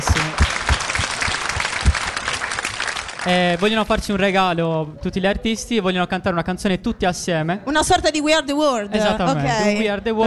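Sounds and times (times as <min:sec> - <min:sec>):
audience applauding the artists at a live show: 0:00.0 - 0:03.8
speech: 0:03.2 - 0:10.2.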